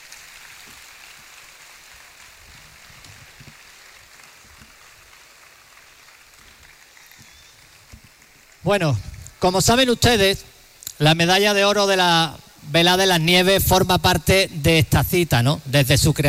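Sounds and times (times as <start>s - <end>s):
audience applause: 0.0s - 9.6s
speech: 8.6s - 16.2s.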